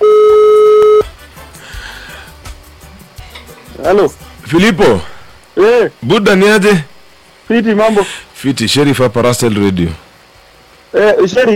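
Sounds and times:
electronic telephone tone as a call is dialed on a live radio show: 0.0s - 1.1s
speech: 3.9s - 6.9s, 7.5s - 10.0s, 10.9s - 11.5s.

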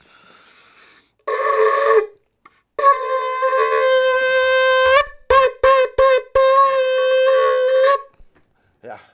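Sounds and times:
horn being blown: 1.2s - 2.2s, 2.8s - 8.2s.

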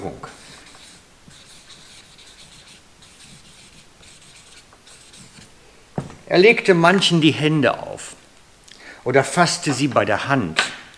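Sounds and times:
speech: 0.0s - 0.4s, 6.3s - 7.9s, 9.0s - 10.7s
pen writing on paper: 0.4s - 5.5s.

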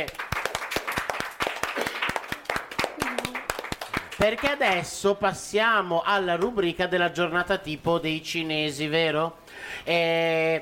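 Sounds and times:
audience applause: 0.0s - 4.5s
speech: 4.2s - 10.6s.

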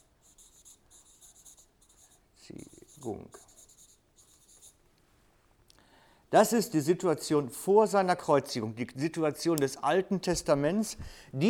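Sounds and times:
scratchy writing strokes as a heading is written: 0.0s - 4.8s
speech: 2.5s - 3.4s, 6.3s - 11.4s.

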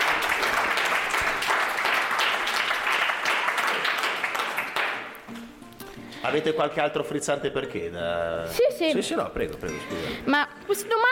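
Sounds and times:
audience applause: 0.0s - 5.2s
speech: 6.3s - 11.1s.

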